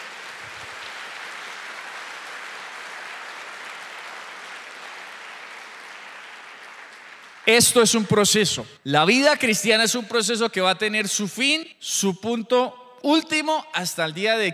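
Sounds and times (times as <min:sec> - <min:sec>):
audience applause: 0:00.0 - 0:08.0
speech: 0:07.5 - 0:14.5.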